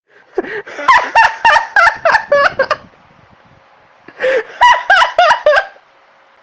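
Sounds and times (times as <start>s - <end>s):
person laughing: 0.3s - 2.9s, 4.1s - 5.8s.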